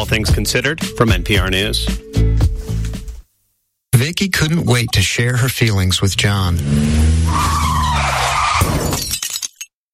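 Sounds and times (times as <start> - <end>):
speech: 0.0 - 2.2, 4.0 - 7.6
car skidding with tire screech: 6.6 - 8.9
car crash: 6.7 - 9.6
shattering debris clattering: 8.6 - 9.7.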